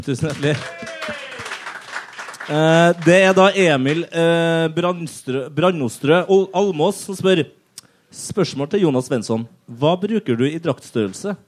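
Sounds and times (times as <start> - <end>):
speech: 0.0 - 1.2, 2.5 - 11.4
applause: 0.1 - 4.1.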